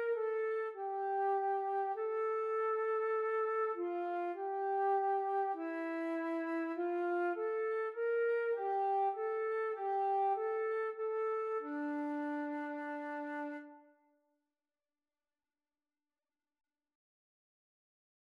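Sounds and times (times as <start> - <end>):
flute duet: 0.0 - 14.0.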